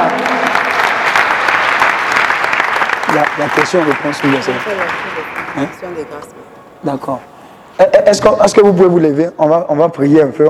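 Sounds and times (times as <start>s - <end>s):
church congregation clapping during a prayer service: 0.0s - 6.4s
speech: 3.1s - 10.4s.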